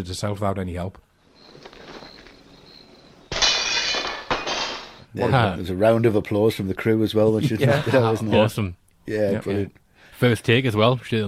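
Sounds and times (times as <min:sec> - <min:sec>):
speech: 0:00.0 - 0:01.7, 0:05.2 - 0:11.2
stone thrown through the window of the abandoned house: 0:03.3 - 0:05.1
laughter: 0:07.3 - 0:08.6.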